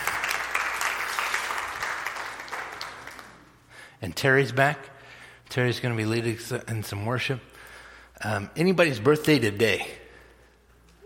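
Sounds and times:
audience applause: 0.0 - 3.5
speech: 4.0 - 4.9, 5.5 - 7.5, 8.2 - 10.0.

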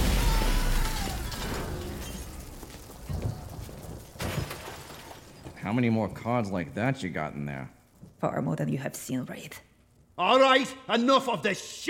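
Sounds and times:
lightning strike sound effect: 0.0 - 4.5
speech: 5.7 - 11.8.

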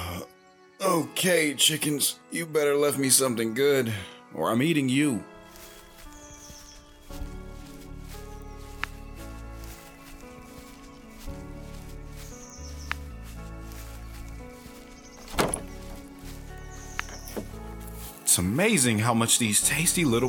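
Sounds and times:
speech: 0.9 - 5.3, 18.4 - 20.2
door creaking open: 15.3 - 16.0.

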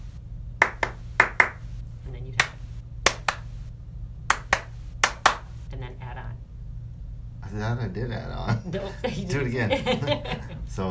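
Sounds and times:
hand claps in a rhythm game: 0.6 - 1.6, 2.4 - 3.5, 4.3 - 5.5
speech: 7.5 - 10.8
laughter: 8.5 - 10.7.

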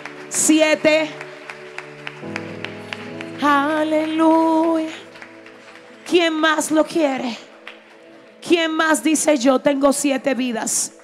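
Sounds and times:
audience applause: 0.0 - 6.8
speech: 0.4 - 1.2, 3.4 - 5.0, 6.1 - 7.4, 8.4 - 11.0.

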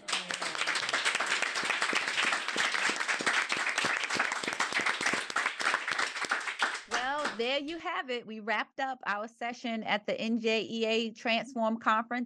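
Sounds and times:
audience applause: 0.0 - 7.4
speech: 7.4 - 12.2.

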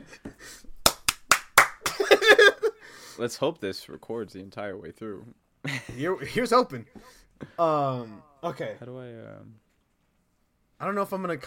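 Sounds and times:
single hand clap for audio sync: 0.8 - 1.9
speech: 3.2 - 9.6, 10.8 - 11.4.

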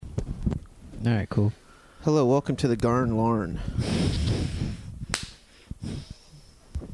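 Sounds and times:
speech: 1.0 - 4.7
single loud hand clap: 5.1 - 5.4.

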